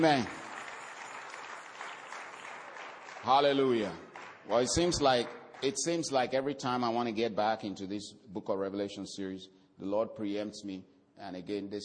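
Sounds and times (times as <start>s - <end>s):
speech: 0.0s - 0.4s, 3.2s - 11.8s
church congregation clapping during a morning service: 0.0s - 6.3s.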